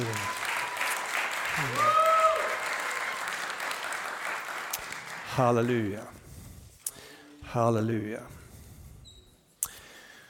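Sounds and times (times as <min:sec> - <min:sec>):
warm audience applause: 0:00.0 - 0:05.9
speech: 0:05.4 - 0:06.2, 0:07.5 - 0:08.4.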